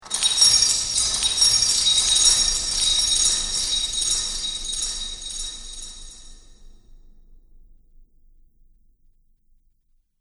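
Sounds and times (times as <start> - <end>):
magic ambience: 0.0 - 6.4
metal chains: 0.0 - 6.4.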